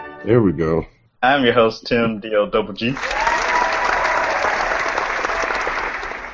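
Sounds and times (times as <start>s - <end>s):
speech: 0.3s - 3.3s
applause sound effect: 2.9s - 6.3s.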